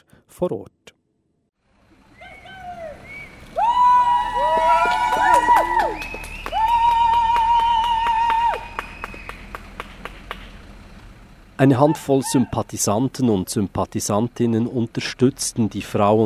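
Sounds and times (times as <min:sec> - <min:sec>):
speech: 0:00.4 - 0:00.8, 0:11.6 - 0:16.2
supporters whistling at a police eviction: 0:02.1 - 0:03.5, 0:04.6 - 0:09.7
scattered claps: 0:04.5 - 0:10.6.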